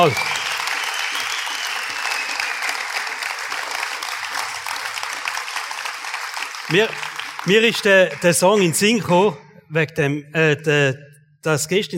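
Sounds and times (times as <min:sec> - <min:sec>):
speech: 0:00.0 - 0:00.3, 0:06.7 - 0:11.9
audience applause: 0:00.0 - 0:08.8.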